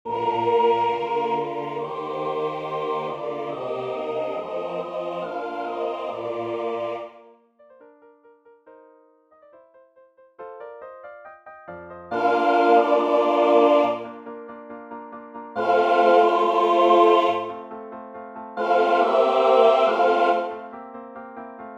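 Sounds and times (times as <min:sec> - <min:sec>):
full choir singing a Kyrie: 0:00.0 - 0:07.3, 0:12.1 - 0:14.2, 0:15.6 - 0:17.7, 0:18.5 - 0:20.7.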